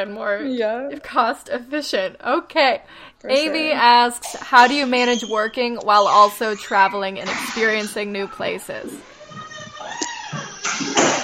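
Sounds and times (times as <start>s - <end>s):
speech: 0.0s - 9.1s
door squeaking: 4.3s - 11.2s.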